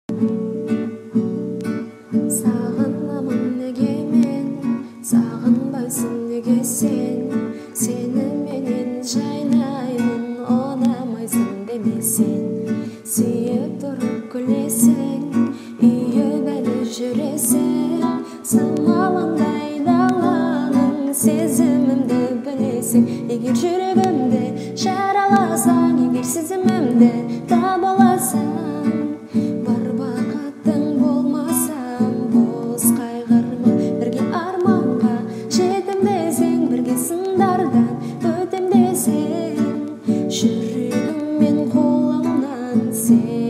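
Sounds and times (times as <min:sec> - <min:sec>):
guitar: 0:00.0 - 0:43.4.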